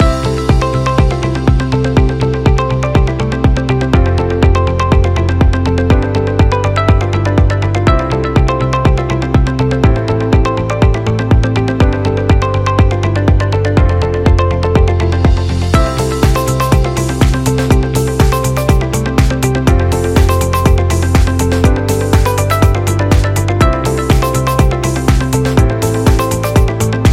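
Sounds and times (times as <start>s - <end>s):
happy corporate music loop: 0.0s - 27.1s.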